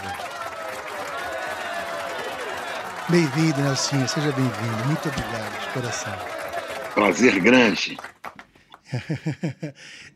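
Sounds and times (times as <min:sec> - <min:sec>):
applause: 0:00.0 - 0:09.0
laughter: 0:01.4 - 0:08.1, 0:08.9 - 0:09.8
speech: 0:03.1 - 0:06.4, 0:07.0 - 0:08.2, 0:08.9 - 0:10.1.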